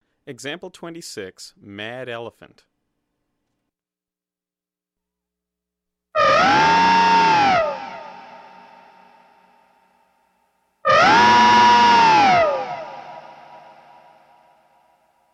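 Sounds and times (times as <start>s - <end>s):
whammy pitch-shifted roar: 6.2s - 9.2s, 10.9s - 14.1s.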